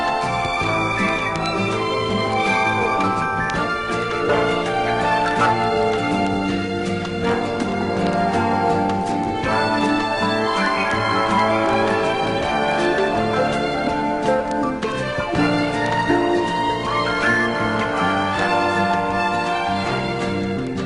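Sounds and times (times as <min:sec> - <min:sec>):
elevator music: 0:00.0 - 0:20.7.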